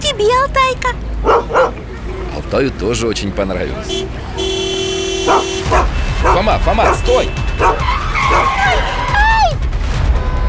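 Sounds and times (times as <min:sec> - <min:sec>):
car braking hard and skidding with tyres squealing: 0:00.0 - 0:09.5
car engine rumbling: 0:00.0 - 0:09.8
speech: 0:00.2 - 0:01.9, 0:02.5 - 0:04.6, 0:06.4 - 0:08.9.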